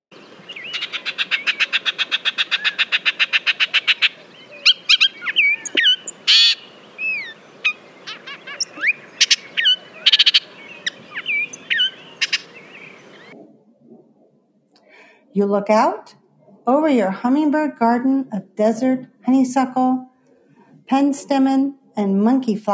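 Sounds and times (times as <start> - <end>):
Bullock's oriole song: 0.0 - 13.4
speech: 15.4 - 16.2, 16.8 - 20.1, 20.9 - 22.7.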